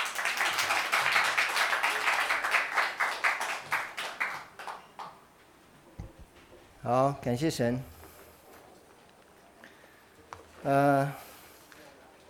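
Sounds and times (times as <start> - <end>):
crowd applause: 0.0 - 5.0
speech: 6.8 - 8.0, 10.6 - 11.2.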